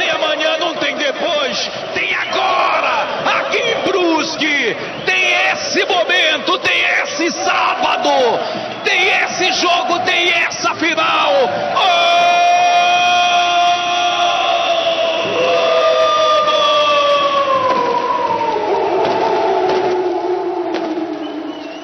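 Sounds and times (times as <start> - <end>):
football fans celebrating: 0.0 - 21.8
fireworks: 19.0 - 20.1, 20.7 - 21.8.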